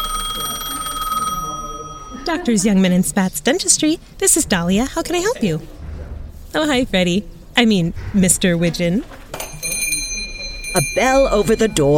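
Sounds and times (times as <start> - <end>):
telephone ringing with high-pitched electronic trill: 0.0 - 2.9, 9.4 - 11.9
speech: 2.3 - 5.8, 6.5 - 9.2, 10.8 - 11.9.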